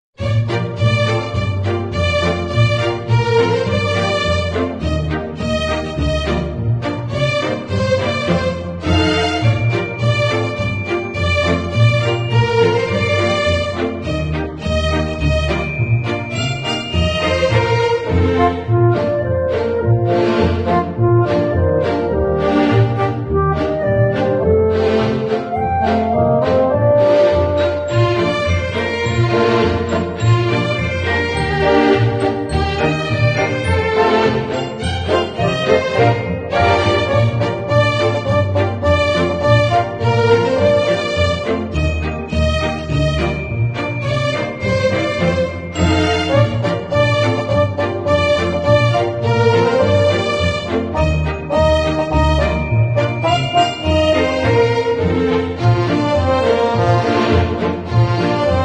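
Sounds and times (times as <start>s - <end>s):
orchestral arrangement: 0.2s - 58.6s.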